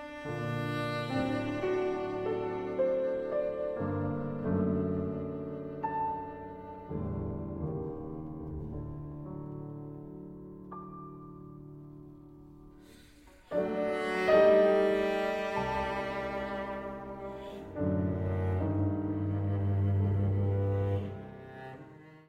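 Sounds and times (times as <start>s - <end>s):
cello playing in G minor: 0.0s - 22.2s
piano accompanying cello: 0.0s - 22.2s.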